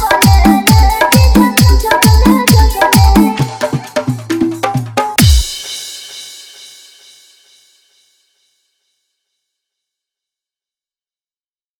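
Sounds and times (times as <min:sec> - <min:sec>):
music mix: 0:00.0 - 0:07.1.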